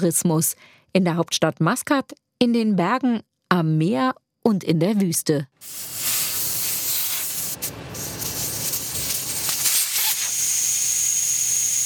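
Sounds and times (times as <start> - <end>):
speech: 0.0 - 6.1
air hissing out of off-road vehicle tires: 5.6 - 11.1.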